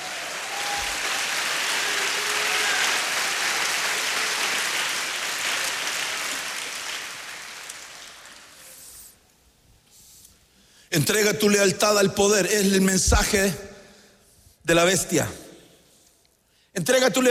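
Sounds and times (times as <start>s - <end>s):
audience clapping hands: 0.0s - 9.0s
speech: 11.0s - 13.7s, 14.7s - 15.4s, 16.8s - 17.2s.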